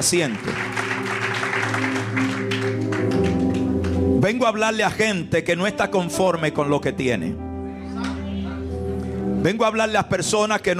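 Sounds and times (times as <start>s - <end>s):
speech: 0.0s - 1.2s, 4.2s - 7.5s, 9.4s - 10.7s
church congregation applauding during a service: 0.0s - 4.2s
sustained keyboard chords: 0.0s - 10.7s.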